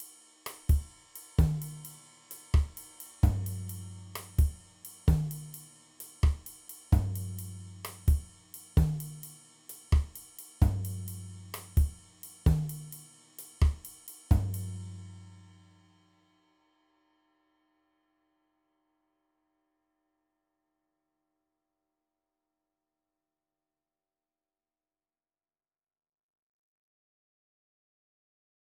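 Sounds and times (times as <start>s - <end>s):
salsa beat: 0.0s - 2.0s, 2.6s - 13.0s, 13.6s - 14.8s.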